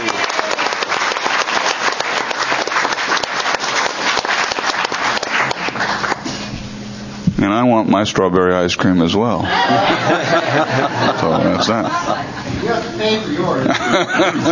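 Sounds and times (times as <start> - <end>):
round of applause: 0.0 - 6.3
speech: 7.5 - 14.4
laughter: 9.4 - 14.4.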